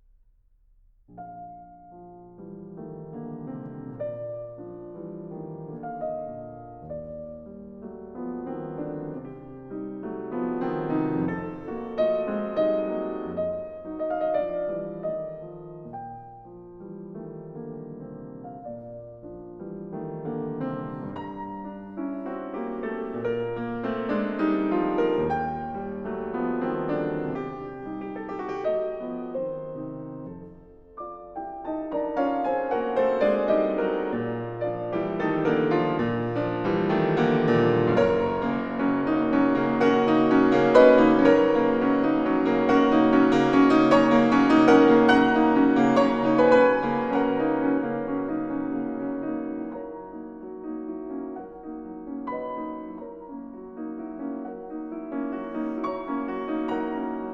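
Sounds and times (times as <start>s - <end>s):
cantabile piano piece in B-flat major: 1.1s - 57.3s.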